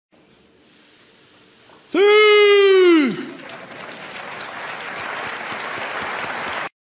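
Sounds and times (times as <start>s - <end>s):
person screaming in celebration: 2.0s - 3.3s.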